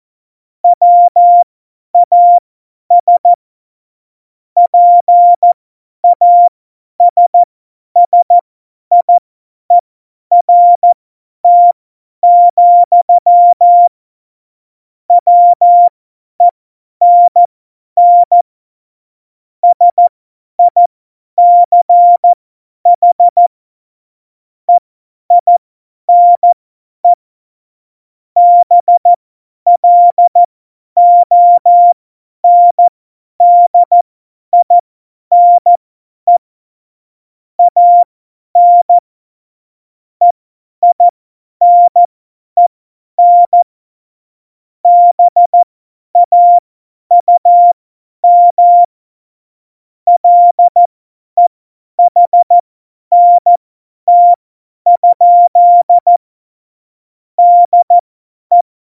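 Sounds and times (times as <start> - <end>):
CW Morse code at tempo 70: 0.8 - 1.4, 2.0 - 3.3, 4.7 - 9.1, 9.7 - 13.9, 15.1 - 18.4, 19.6 - 22.4, 23.0 - 23.5, 25.3 - 26.6, 28.4 - 36.4, 37.6 - 39.0, 40.2 - 43.7, 44.8 - 48.9, 50.1 - 56.2, 57.4 - 58.6.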